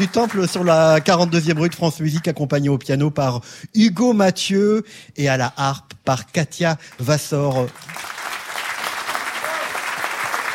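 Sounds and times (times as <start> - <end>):
audience applause: 0.0 - 1.7, 7.5 - 10.5
speech: 0.0 - 8.1.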